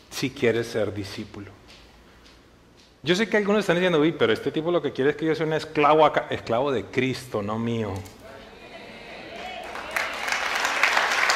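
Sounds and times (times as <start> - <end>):
speech: 0.2 - 1.6, 3.0 - 8.2
audience applause: 9.2 - 11.3.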